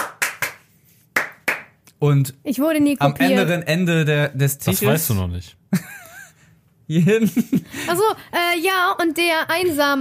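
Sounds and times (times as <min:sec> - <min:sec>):
sharp hand claps: 0:00.0 - 0:01.9
speech: 0:02.0 - 0:05.9, 0:06.9 - 0:10.0
laughter: 0:05.8 - 0:07.9.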